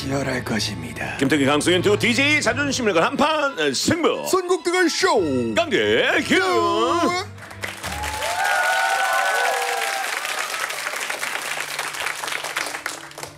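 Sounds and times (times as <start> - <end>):
speech: 0.1 - 7.3
studio audience applause: 7.4 - 13.3.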